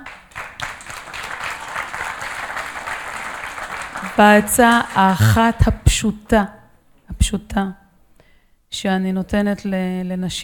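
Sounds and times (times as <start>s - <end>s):
crowd applauding: 0.4s - 4.2s
speech: 4.2s - 6.6s, 7.3s - 7.8s, 8.7s - 10.4s.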